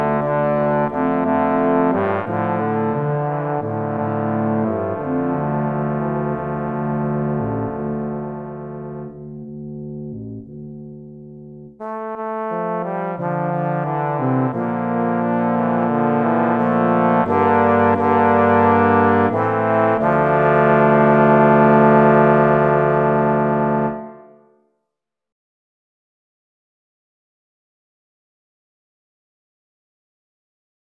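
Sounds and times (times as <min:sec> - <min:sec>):
midi music: 0:00.0 - 0:11.8, 0:12.9 - 0:24.4.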